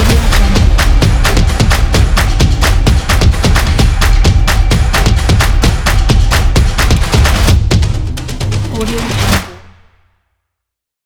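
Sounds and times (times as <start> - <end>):
percussion: 0.0 - 10.2.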